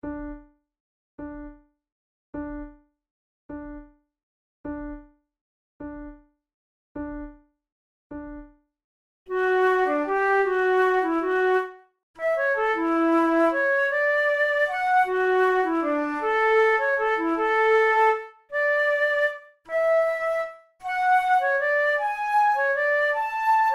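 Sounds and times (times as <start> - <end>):
two flutes playing a sonata in B minor: 9.3 - 23.7.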